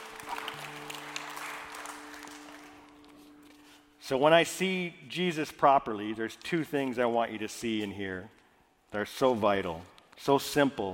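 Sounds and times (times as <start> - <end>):
audience clapping: 0.0 - 3.6
speech: 4.1 - 10.9.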